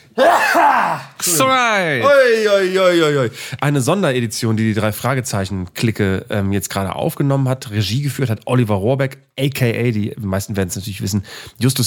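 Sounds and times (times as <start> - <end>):
sneeze: 0.2 - 1.2
speech: 0.2 - 11.8.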